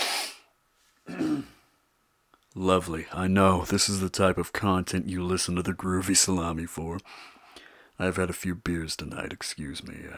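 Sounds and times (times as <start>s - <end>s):
breathy rush of air: 0.0s - 0.5s
burp away from the microphone: 1.1s - 1.6s
speech: 2.6s - 7.4s, 8.0s - 10.1s.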